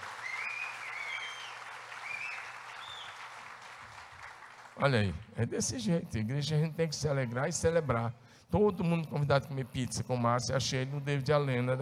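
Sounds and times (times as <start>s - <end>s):
audience applause: 0.0s - 4.9s
speech: 4.8s - 11.8s.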